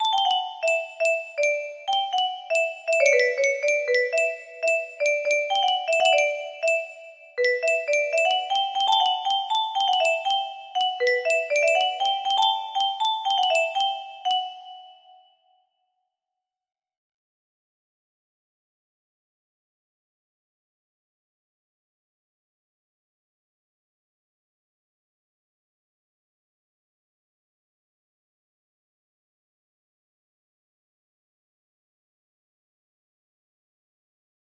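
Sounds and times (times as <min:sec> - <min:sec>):
melody: 0:00.0 - 0:15.2.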